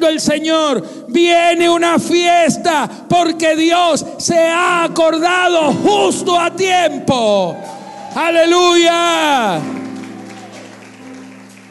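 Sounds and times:
speech: 0.0s - 9.8s
audience applauding: 7.5s - 11.6s.

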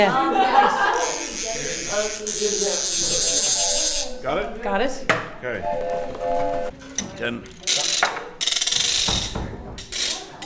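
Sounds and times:
speech: 0.0s - 0.8s, 2.0s - 3.4s, 4.2s - 7.6s
laughter: 0.0s - 2.0s
ratchet sound effect: 0.9s - 4.2s, 7.5s - 10.4s.

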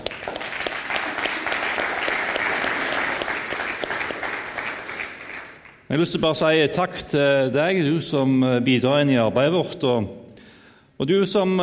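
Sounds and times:
audience applause: 0.0s - 5.8s
speech: 5.9s - 10.2s, 11.0s - 11.6s.

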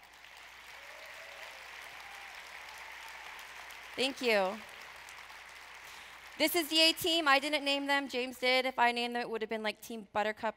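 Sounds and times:
audience applause: 0.0s - 7.2s
speech: 4.0s - 4.7s, 6.4s - 10.5s.

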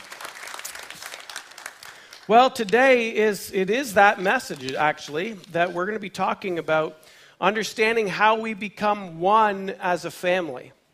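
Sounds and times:
audience applause: 0.0s - 2.3s
speech: 2.3s - 10.8s.

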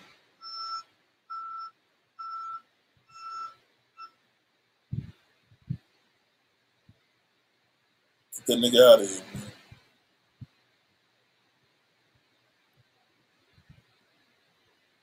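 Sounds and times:
van reversing beeps: 0.4s - 4.2s
speech: 8.5s - 9.4s.

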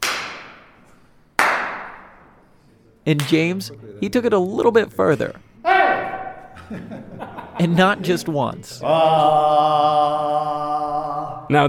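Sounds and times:
hand clap in a reverberant echoic chamber: 0.0s - 2.4s, 3.2s - 3.4s
speech: 3.1s - 5.5s, 6.6s - 11.6s
laughter: 6.4s - 11.3s.

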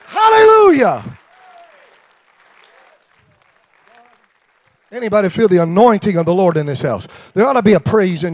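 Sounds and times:
audience applause: 0.0s - 5.2s
voices cheering and whooping: 0.1s - 2.0s
speech: 0.8s - 1.2s, 4.9s - 8.3s.

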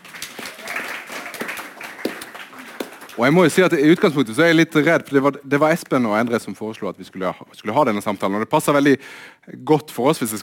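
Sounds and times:
audience applause: 0.0s - 4.4s
speech: 3.2s - 10.4s.

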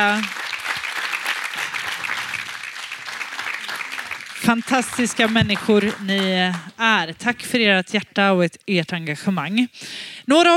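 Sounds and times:
speech: 0.0s - 0.4s, 4.5s - 10.5s
warm applause from seminar audience: 0.0s - 6.9s.

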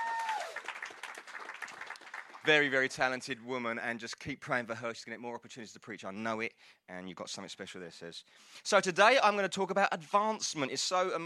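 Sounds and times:
round of applause: 0.0s - 3.1s
speech: 2.4s - 11.2s.

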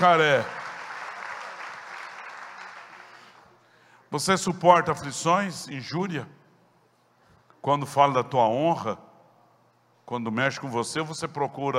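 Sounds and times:
speech: 0.0s - 0.6s, 4.1s - 6.4s, 7.6s - 9.1s, 10.1s - 11.7s
applause: 0.0s - 3.6s.

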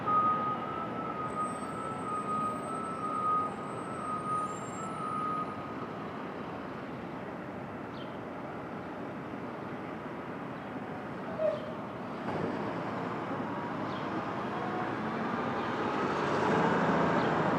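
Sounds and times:
rumble of passing vehicles on Brooklyn street at dawn: 0.0s - 17.5s.

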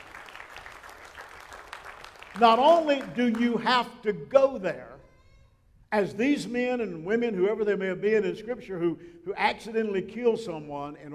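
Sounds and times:
audience applause: 0.0s - 3.4s
speech: 2.4s - 4.9s, 5.9s - 11.1s.

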